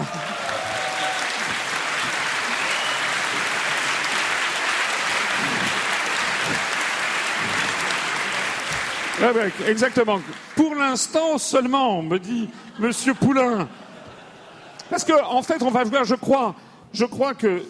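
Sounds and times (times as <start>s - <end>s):
audience applause: 0.0s - 11.3s
speech: 9.2s - 13.8s, 14.9s - 17.6s
laughter: 12.2s - 15.4s.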